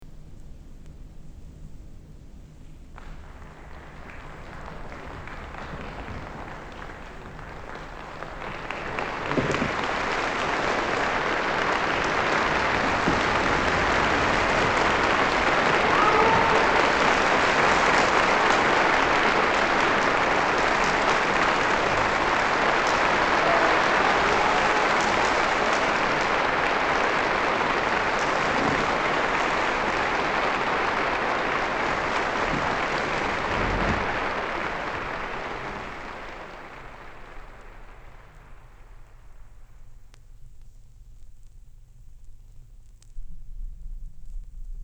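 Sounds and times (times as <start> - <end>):
hand clap: 3.0 - 38.0.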